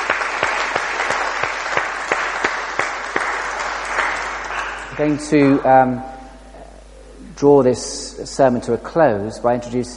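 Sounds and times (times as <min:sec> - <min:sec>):
audience round of applause: 0:00.0 - 0:05.4
speech: 0:05.0 - 0:06.1, 0:07.4 - 0:09.9.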